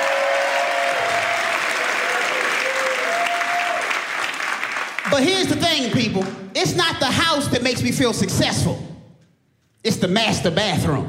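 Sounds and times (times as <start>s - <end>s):
audience clapping: 0.0s - 6.4s
speech: 5.2s - 8.9s, 9.8s - 11.0s.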